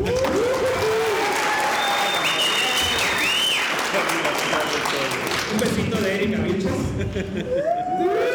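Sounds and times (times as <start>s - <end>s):
whistles and cheers: 0.0s - 5.1s
audience applause: 0.0s - 6.2s
speech: 6.1s - 8.2s.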